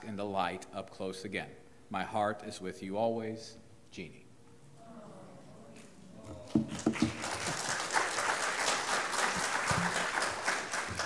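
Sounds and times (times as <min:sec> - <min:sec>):
speech: 0:00.0 - 0:04.2
audience clapping: 0:06.4 - 0:11.0.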